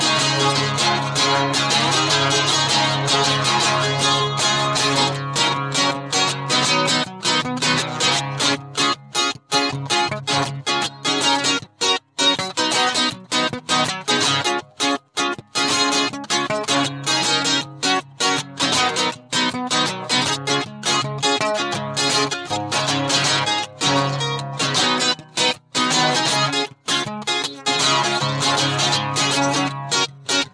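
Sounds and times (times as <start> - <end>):
acoustic guitar: 0.0 - 30.5.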